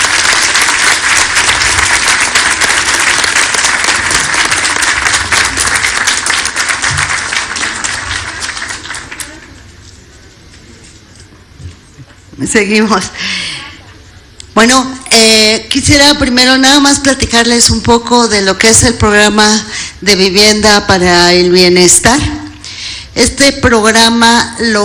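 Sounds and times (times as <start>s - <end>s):
crowd applauding loudly: 0.0s - 9.7s
speech: 12.5s - 13.4s, 14.6s - 22.4s, 23.2s - 24.8s.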